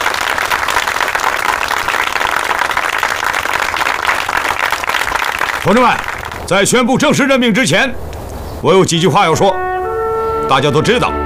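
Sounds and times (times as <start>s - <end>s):
audience applause: 0.0s - 6.5s
speech: 5.7s - 9.6s, 10.5s - 11.2s.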